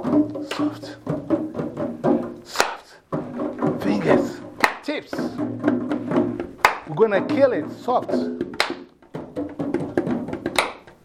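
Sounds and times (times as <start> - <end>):
speech: 0.2 - 1.3, 7.0 - 8.5
soft hand claps: 0.3 - 1.0, 2.4 - 5.4, 6.1 - 7.0, 8.4 - 11.0.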